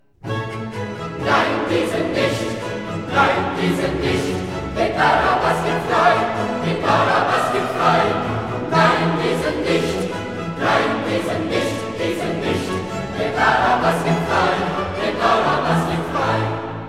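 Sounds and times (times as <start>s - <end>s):
choir singing: 0.2s - 16.8s.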